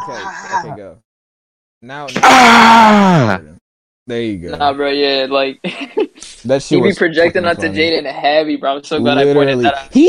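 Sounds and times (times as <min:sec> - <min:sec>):
speech: 0:00.0 - 0:01.1, 0:01.8 - 0:10.0
person screaming: 0:02.1 - 0:03.4.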